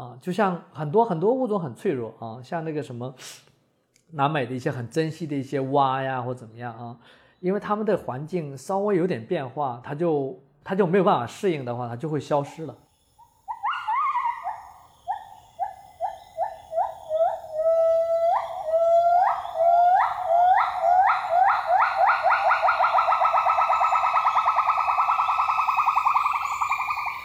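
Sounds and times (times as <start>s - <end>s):
speech: 0.2s - 3.5s, 4.1s - 12.8s
gibbon calls in Borneo rainforest: 13.2s - 27.2s.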